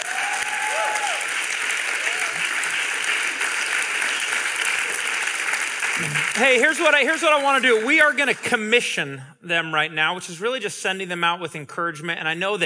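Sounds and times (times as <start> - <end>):
audience applause: 0.0 - 8.2
speech: 6.0 - 12.6.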